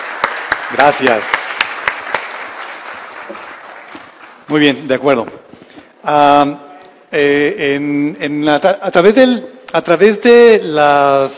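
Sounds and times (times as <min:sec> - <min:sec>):
audience applause: 0:00.0 - 0:04.7
speech: 0:00.7 - 0:01.4, 0:04.5 - 0:05.4, 0:06.0 - 0:11.3.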